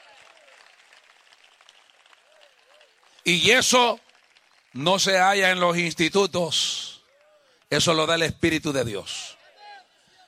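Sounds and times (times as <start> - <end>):
audience applauding in a large room: 0.0 - 6.0
speech: 3.2 - 4.0, 4.7 - 6.9, 7.7 - 9.4.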